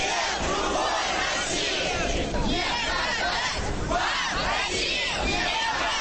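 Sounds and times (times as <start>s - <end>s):
large crowd of young people chanting and shouting slogans: 0.0s - 5.9s.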